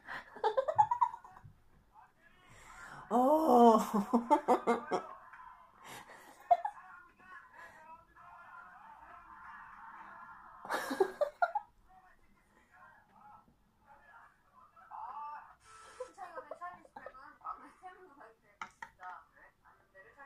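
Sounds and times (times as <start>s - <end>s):
laughing: 0.0s - 1.5s, 3.1s - 7.0s, 9.0s - 11.8s.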